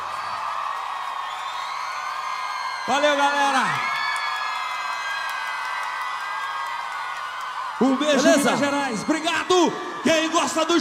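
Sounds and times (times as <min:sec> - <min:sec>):
large crowd applauding and cheering: 0:00.0 - 0:10.7
speech: 0:02.9 - 0:04.0, 0:07.8 - 0:10.7.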